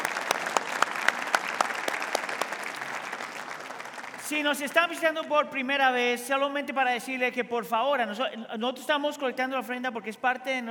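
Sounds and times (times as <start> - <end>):
audience applause: 0.0 - 4.6
speech: 4.3 - 10.6.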